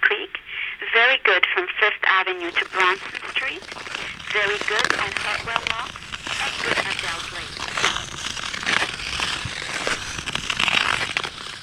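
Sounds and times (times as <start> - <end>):
speech: 0.3 - 8.0
ice skates scraping on canal ice: 2.4 - 11.6.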